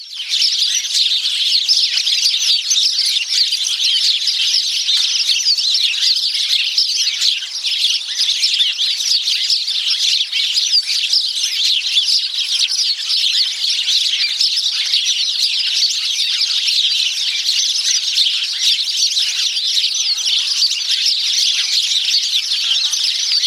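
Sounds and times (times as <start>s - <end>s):
Passer domesticus: 0.0s - 23.4s.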